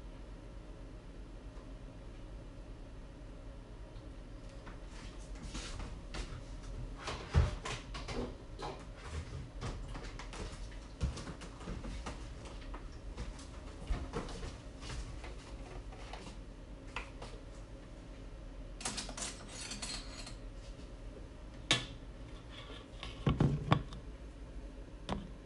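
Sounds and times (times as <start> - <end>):
low steady hum: 0.0 - 25.4
utensils and bowls clattering while making banana bread: 18.8 - 20.4.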